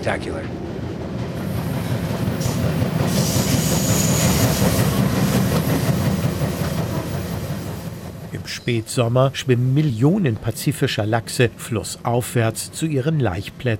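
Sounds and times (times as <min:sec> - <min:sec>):
speech: 0:00.0 - 0:00.7, 0:08.4 - 0:13.7
passenger train running on rails: 0:00.0 - 0:13.7.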